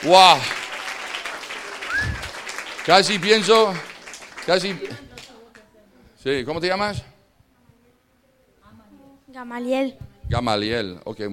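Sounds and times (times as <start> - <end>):
speech: 0.0 - 0.6, 2.9 - 3.9, 4.5 - 5.1, 6.2 - 7.1, 9.3 - 11.3
audience applause: 0.0 - 5.4
brief cheer: 1.8 - 2.4.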